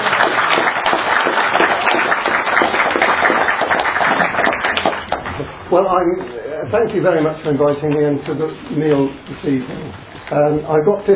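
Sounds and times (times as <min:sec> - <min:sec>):
audience applause: 0:00.0 - 0:05.4
speech: 0:05.7 - 0:11.1.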